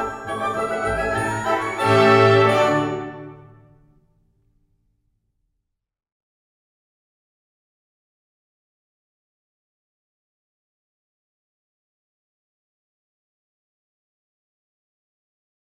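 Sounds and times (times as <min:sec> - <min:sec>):
polonaise music for ballet grands battements: 0:00.0 - 0:03.9.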